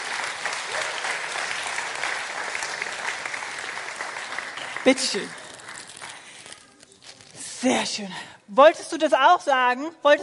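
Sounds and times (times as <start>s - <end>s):
audience applause: 0.0s - 6.6s
speech: 4.8s - 5.4s, 7.6s - 10.2s.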